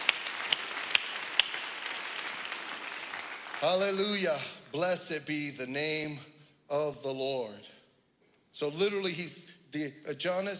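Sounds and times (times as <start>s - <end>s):
audience clapping: 0.0s - 4.8s
speech: 3.6s - 7.8s, 8.6s - 10.5s.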